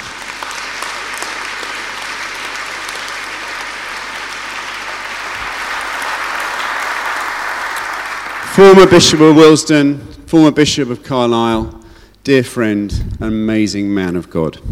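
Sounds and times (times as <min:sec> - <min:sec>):
audience applause at a morning service: 0:00.0 - 0:09.4
speech: 0:08.6 - 0:14.6.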